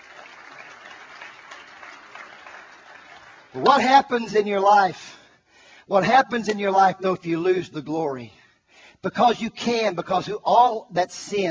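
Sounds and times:
audience clapping: 0:00.0 - 0:04.3
speech: 0:03.5 - 0:05.2, 0:05.9 - 0:08.4, 0:09.0 - 0:11.4.

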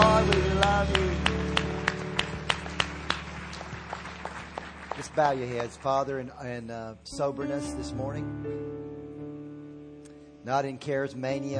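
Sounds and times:
audience clapping in rhythm: 0:00.0 - 0:06.6
speech: 0:05.2 - 0:08.7, 0:10.4 - 0:11.5.

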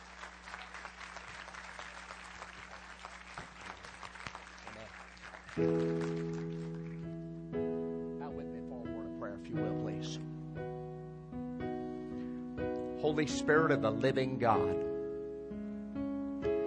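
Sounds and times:
church congregation clapping to welcome a guest speaker: 0:00.0 - 0:07.2
speech: 0:05.6 - 0:06.2, 0:13.0 - 0:14.9
sustained keyboard chord: 0:05.6 - 0:16.6.

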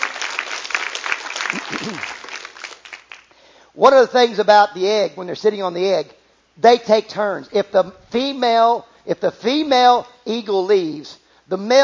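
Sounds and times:
audience applause: 0:00.0 - 0:03.3
speech: 0:01.8 - 0:02.2, 0:03.8 - 0:11.8.

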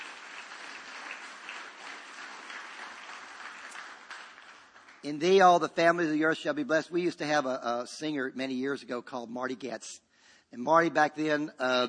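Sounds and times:
audience clapping: 0:00.0 - 0:06.0
speech: 0:05.0 - 0:11.8.

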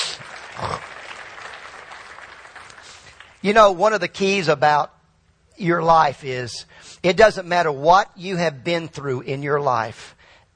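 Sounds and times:
audience applause: 0:00.0 - 0:03.4
speech: 0:03.4 - 0:05.0, 0:05.6 - 0:10.5.

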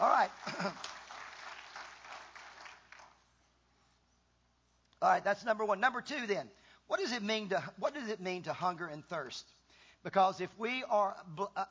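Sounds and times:
speech: 0:00.0 - 0:01.0, 0:05.0 - 0:11.6
church audience clapping: 0:00.0 - 0:03.3.

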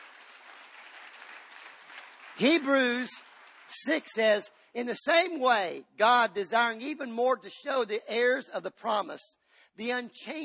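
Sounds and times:
congregation clapping at a church service: 0:00.0 - 0:05.3
speech: 0:02.4 - 0:10.4.

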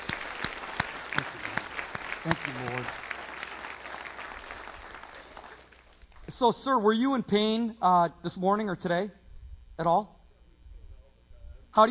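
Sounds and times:
church congregation clapping: 0:00.0 - 0:06.4
speech: 0:02.2 - 0:03.1, 0:06.4 - 0:09.2, 0:09.8 - 0:10.2.

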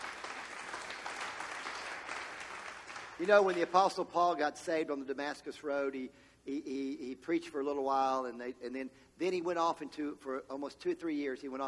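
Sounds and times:
audience clapping: 0:00.0 - 0:04.1
speech: 0:03.2 - 0:11.6.

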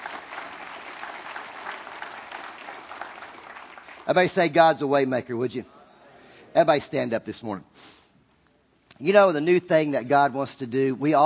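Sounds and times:
audience applause from a large gathering: 0:00.0 - 0:04.3
speech: 0:04.1 - 0:05.8, 0:06.6 - 0:08.0, 0:09.0 - 0:11.2.

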